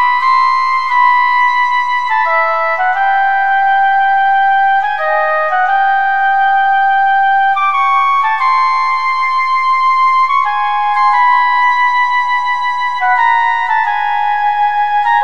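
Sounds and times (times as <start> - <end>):
solo flute sonata movement: 0.0 - 15.2.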